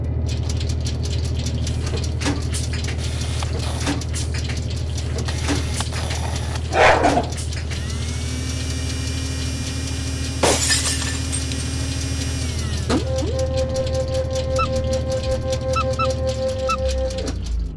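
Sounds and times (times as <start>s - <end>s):
steady electrical machine hum: 0.2s - 17.7s
glass shattering: 10.5s - 11.6s.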